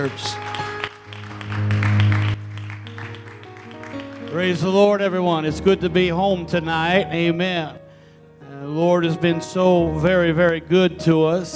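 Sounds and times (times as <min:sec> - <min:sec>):
speech: 0:00.0 - 0:00.4, 0:04.3 - 0:07.8, 0:08.7 - 0:11.5
audience applause: 0:00.0 - 0:04.9.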